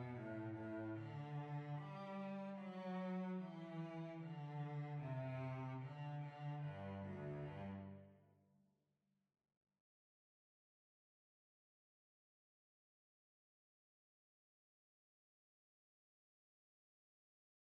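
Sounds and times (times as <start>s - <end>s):
violoncello: 0.0s - 8.3s.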